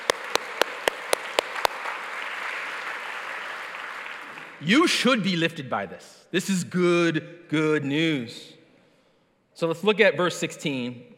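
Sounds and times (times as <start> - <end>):
audience clapping: 0.0 - 5.0
speech: 4.6 - 8.6, 9.6 - 11.1.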